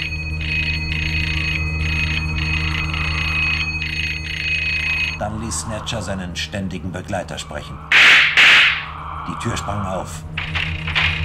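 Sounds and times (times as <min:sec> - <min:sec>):
doorbell ringing heard over walkie-talkies: 0:00.0 - 0:05.2
speech: 0:05.2 - 0:08.0, 0:09.3 - 0:10.7.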